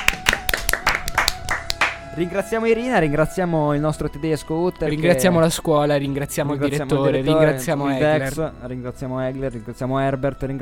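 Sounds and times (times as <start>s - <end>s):
hands clapping: 0.0s - 2.1s
speech: 2.2s - 10.6s.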